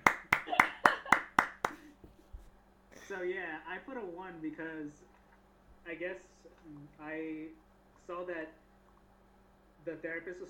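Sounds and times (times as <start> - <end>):
sharp hand claps: 0.0 - 2.0
speech: 3.2 - 5.2, 5.8 - 8.6, 9.8 - 10.4.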